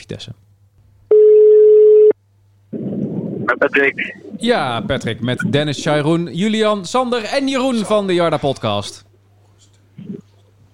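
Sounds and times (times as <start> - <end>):
speech: 0.0 - 0.5, 3.5 - 9.1
outgoing telephone call ringing tone: 1.1 - 2.2.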